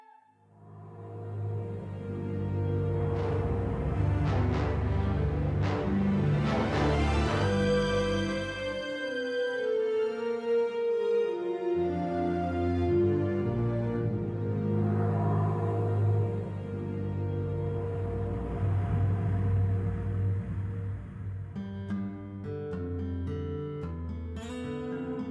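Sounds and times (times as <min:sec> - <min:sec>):
music: 0:00.0 - 0:25.2.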